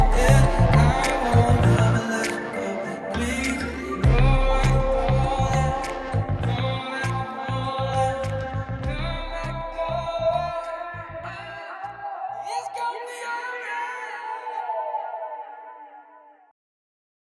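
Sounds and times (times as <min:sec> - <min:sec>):
music: 0:00.0 - 0:10.8.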